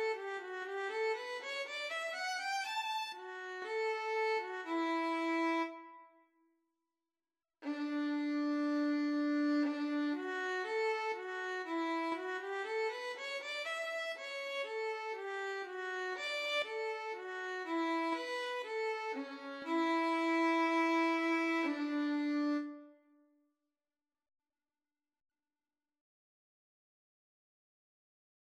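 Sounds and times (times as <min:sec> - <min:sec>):
violin and viola duet: 0:00.0 - 0:05.9, 0:07.6 - 0:22.9.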